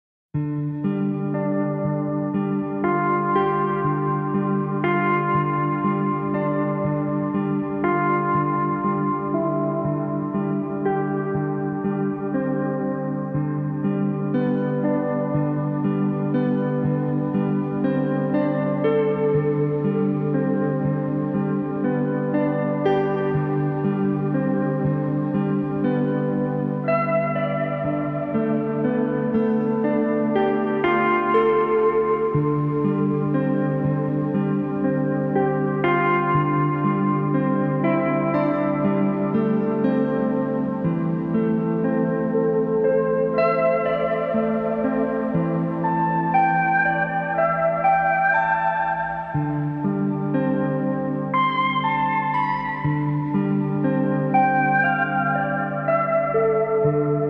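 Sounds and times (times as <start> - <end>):
guitar: 0.4 - 57.2.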